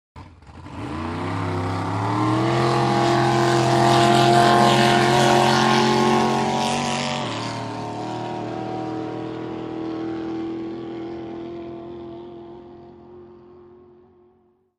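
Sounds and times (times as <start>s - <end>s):
drag boat engine starting: 0.2s - 13.8s.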